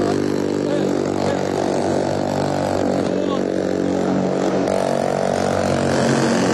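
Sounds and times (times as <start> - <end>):
engine roar of two attack boats carrying SAT commandos: 0.0 - 6.5.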